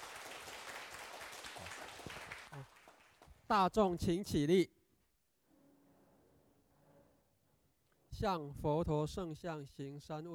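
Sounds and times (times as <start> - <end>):
audience applause: 0.0 - 3.3
speech: 3.5 - 4.8, 8.2 - 10.3.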